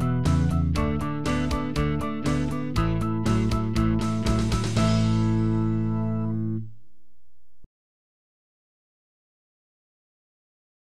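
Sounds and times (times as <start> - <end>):
guitar playing twelve-bar blues progression in A with double stops: 0.0 - 6.6.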